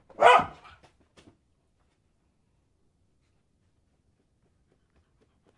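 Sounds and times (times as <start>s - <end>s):
dog barking while playing fetch: 0.2s - 0.8s.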